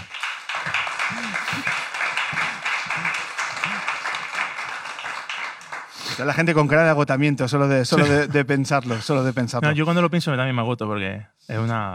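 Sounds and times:
audience applause: 0.0s - 6.5s
laughter: 1.0s - 4.4s, 7.9s - 9.9s
speech: 6.2s - 11.9s.

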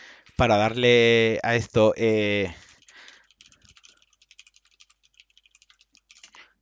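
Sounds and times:
speech: 0.4s - 2.6s
typing a message on Telegram: 2.5s - 6.5s.

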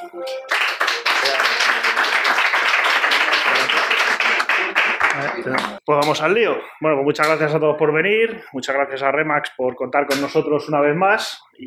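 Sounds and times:
audience applause: 0.0s - 5.8s
speech: 0.1s - 1.6s, 5.4s - 11.6s.

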